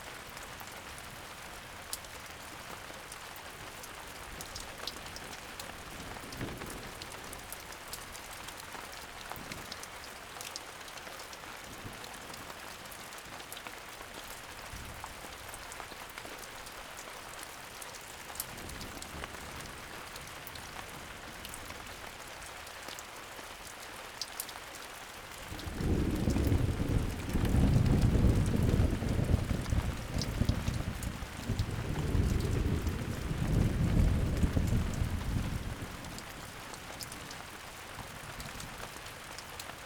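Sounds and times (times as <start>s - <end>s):
thunderstorm: 25.4s - 36.6s.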